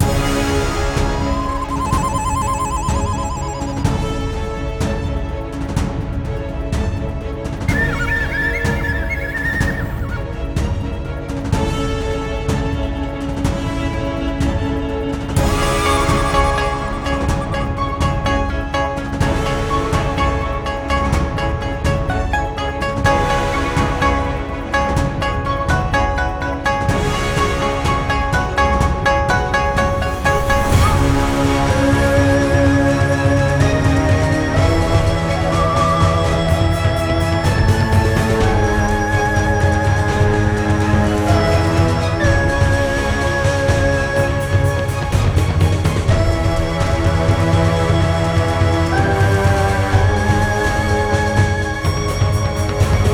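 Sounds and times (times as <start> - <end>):
battle background music: 0.0 - 53.1.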